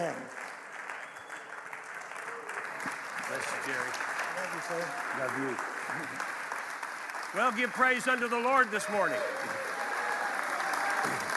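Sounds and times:
audience applauding: 0.0 - 11.3
speech: 3.7 - 6.3, 7.3 - 9.6.

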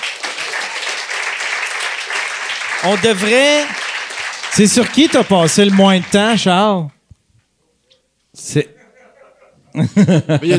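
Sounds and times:
applause: 0.0 - 6.7
speech: 2.8 - 3.8, 4.5 - 7.0, 8.4 - 8.8, 9.8 - 10.5
laughter: 8.6 - 10.5.

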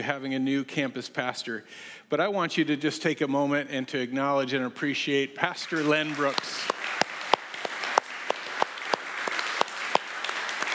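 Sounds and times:
speech: 0.0 - 6.8
crowd applause: 5.6 - 10.7.

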